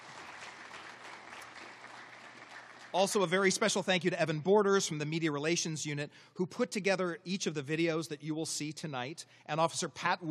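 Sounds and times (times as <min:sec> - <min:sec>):
crowd applause at a police ceremony and reception: 0:00.0 - 0:03.3
speech: 0:02.9 - 0:10.2.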